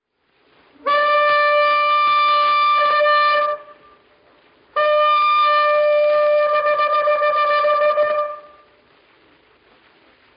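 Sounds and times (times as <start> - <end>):
municipal trumpet call: 0.8 - 4.0, 4.8 - 8.8.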